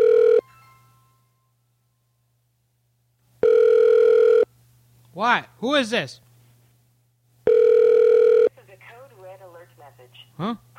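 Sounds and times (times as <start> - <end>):
telephone ringing: 0.0 - 0.6, 3.4 - 4.5, 7.4 - 8.5
speech: 5.2 - 6.2, 10.0 - 10.7.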